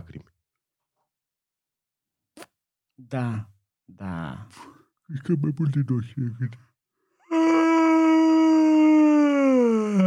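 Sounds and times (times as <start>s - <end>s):
speech: 2.4s - 6.7s
long exaggerated yawn: 7.2s - 10.0s.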